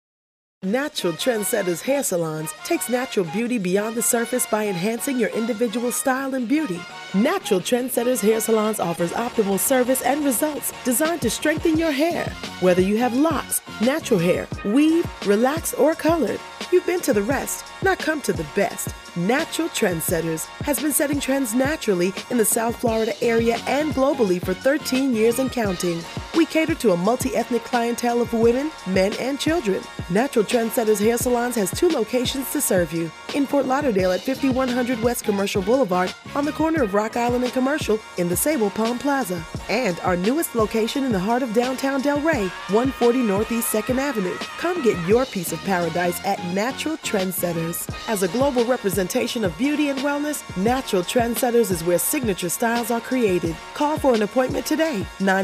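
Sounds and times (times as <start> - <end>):
radio music: 0.7 - 55.4.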